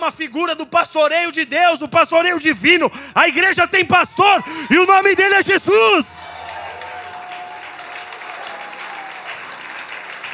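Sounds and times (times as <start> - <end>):
speech: 0.0 - 6.2
audience applause: 6.2 - 10.3.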